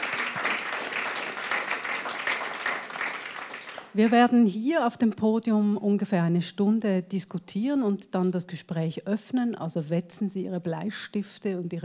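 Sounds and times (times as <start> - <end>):
audience applause: 0.0 - 3.9
speech: 4.0 - 11.8.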